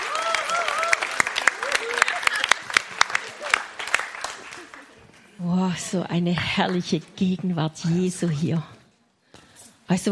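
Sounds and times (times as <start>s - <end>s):
congregation applause at a church service: 0.0s - 5.2s
speech: 5.4s - 8.8s, 9.9s - 10.0s.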